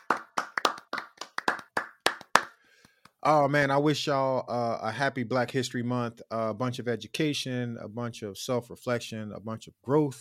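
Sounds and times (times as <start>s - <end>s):
clapping: 0.0s - 3.2s
speech: 3.2s - 10.2s.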